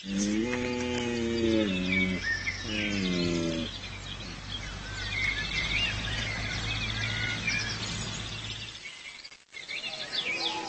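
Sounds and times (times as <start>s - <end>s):
birds chirping: 0.0s - 10.6s
red deer stag bellowing mating calls: 0.1s - 3.7s.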